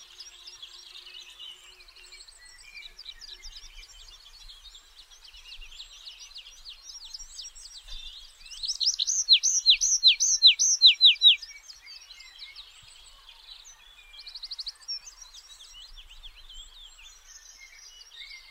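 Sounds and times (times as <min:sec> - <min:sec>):
Tree pipit singing a rhythmic trill: 0:09.0 - 0:11.4.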